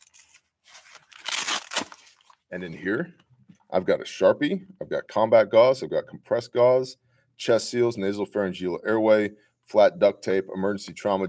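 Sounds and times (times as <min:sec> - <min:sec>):
pocket pulled out of a medical kit pouch: 0:00.0 - 0:02.5
speech: 0:02.5 - 0:11.2.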